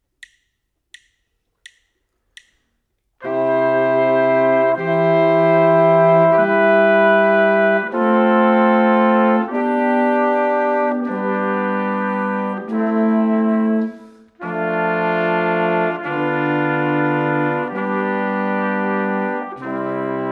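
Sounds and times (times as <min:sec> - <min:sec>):
brass quartet: 0:03.2 - 0:20.3.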